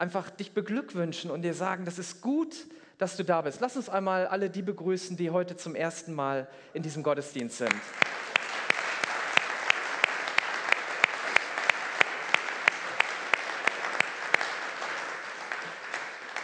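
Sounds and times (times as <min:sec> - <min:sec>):
speech: 0:00.0 - 0:08.4
audience applause: 0:07.7 - 0:16.4.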